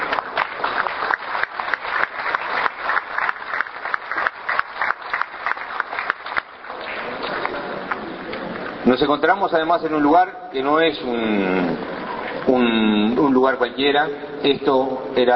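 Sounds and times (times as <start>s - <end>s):
audience applause: 0.0s - 8.8s
speech: 8.9s - 15.3s.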